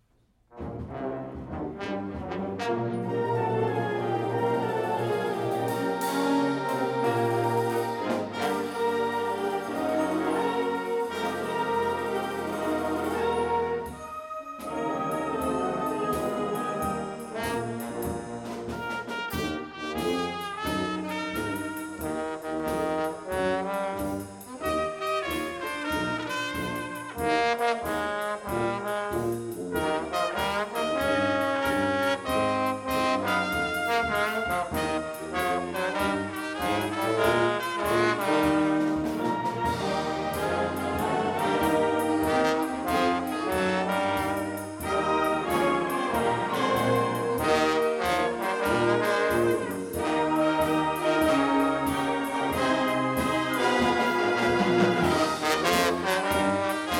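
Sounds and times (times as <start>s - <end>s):
Dixieland jazz jam: 0.5s - 56.9s.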